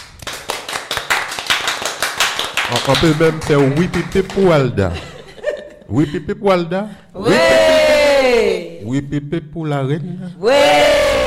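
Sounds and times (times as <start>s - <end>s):
audience clapping in unison at a small show: 0.0s - 4.8s
speech: 2.7s - 5.1s, 5.9s - 7.6s, 8.2s - 11.0s
laughter: 3.6s - 6.5s, 7.2s - 8.2s.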